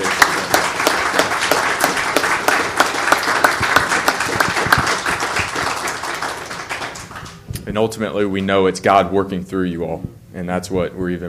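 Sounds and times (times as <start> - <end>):
audience round of applause: 0.0 - 7.4
speech: 7.8 - 11.2.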